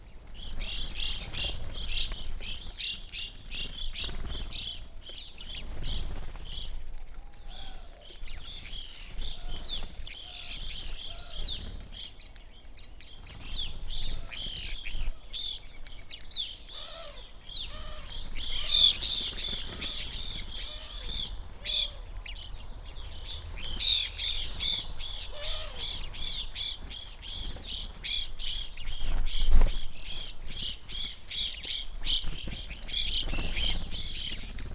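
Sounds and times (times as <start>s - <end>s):
evening grosbeak flock chirping: 0.0s - 34.7s.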